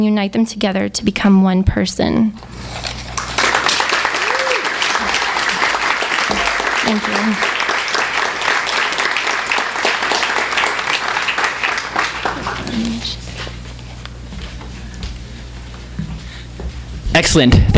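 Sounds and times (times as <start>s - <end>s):
speech: 0.0s - 3.0s, 6.9s - 7.6s, 17.2s - 17.7s
room murmur: 2.1s - 17.7s
audience applause: 3.1s - 13.3s.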